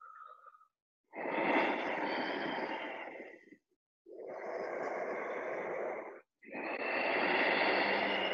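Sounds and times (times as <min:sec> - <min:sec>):
loud breathing in and out through the nose: 0:01.1 - 0:08.3.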